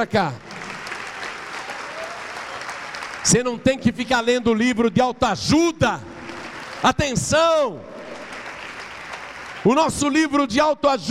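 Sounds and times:
speech: 0.0 - 0.5, 3.2 - 6.1, 6.8 - 7.9, 9.6 - 11.0
audience applause: 0.4 - 3.5, 6.2 - 7.1, 7.9 - 10.1.

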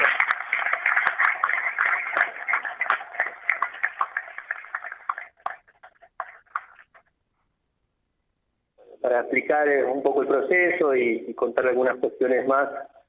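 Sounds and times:
audience applause: 0.0 - 6.9
speech: 9.3 - 12.9.

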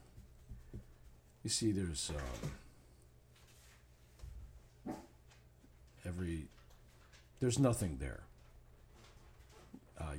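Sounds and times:
speech: 1.4 - 2.6, 6.0 - 6.6, 7.4 - 8.3, 10.0 - 10.1
dog barking at the bottom of the stairs: 4.8 - 5.2.

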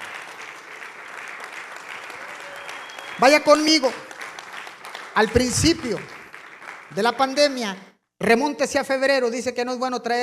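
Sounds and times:
audience applause: 0.0 - 7.7
speech: 3.2 - 4.1, 5.2 - 6.2, 6.9 - 10.2.

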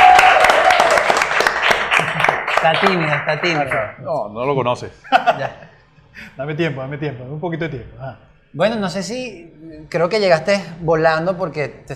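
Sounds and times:
audience applause: 0.0 - 3.9
speech: 2.6 - 11.9
laughter: 5.0 - 5.8.

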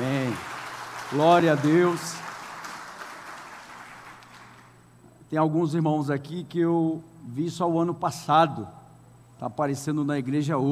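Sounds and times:
audience applause: 0.0 - 4.7
speech: 1.1 - 2.2, 5.3 - 8.8, 9.4 - 10.7.

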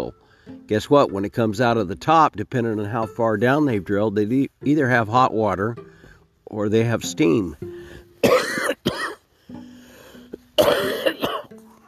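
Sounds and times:
speech: 0.7 - 5.9, 6.5 - 8.4
harsh raspy coughing fits from a cold: 8.2 - 9.2, 10.6 - 11.5.

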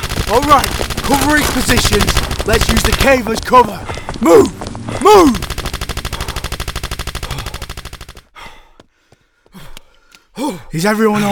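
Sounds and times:
automatic gunfire: 0.0 - 3.6, 5.2 - 8.3
speech: 0.3 - 5.5, 10.4 - 11.2.

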